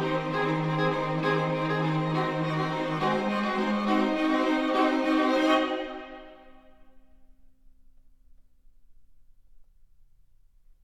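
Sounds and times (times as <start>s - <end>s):
string quartet: 0.0s - 6.8s.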